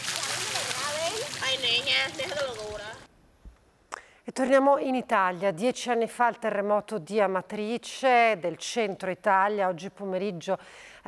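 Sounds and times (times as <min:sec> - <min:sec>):
voices calling: 0:00.0 - 0:03.1
water splashing as people wash outdoors: 0:00.0 - 0:03.1
speech: 0:01.7 - 0:03.0, 0:04.3 - 0:11.0.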